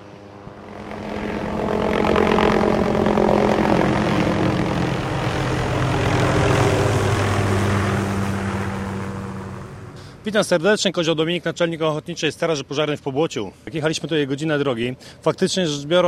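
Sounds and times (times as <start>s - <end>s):
helicopter approaching with suspended water tank: 0.0s - 10.6s
speech: 10.3s - 16.0s.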